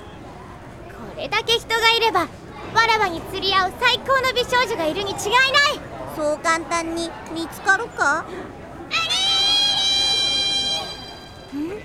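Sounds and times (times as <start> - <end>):
speech: 1.2 - 9.1
girl's piercing scream: 8.9 - 11.0.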